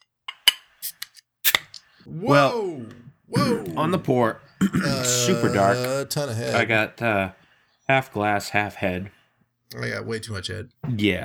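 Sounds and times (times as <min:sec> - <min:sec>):
beer bottle being opened: 0:00.4 - 0:01.8
speech: 0:02.0 - 0:11.2
laughter: 0:02.1 - 0:07.4.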